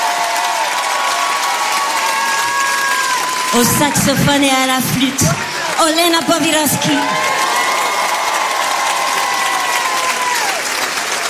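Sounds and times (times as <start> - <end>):
concert crowd applause and cheering: 0.0 - 11.2
speech: 3.5 - 7.4.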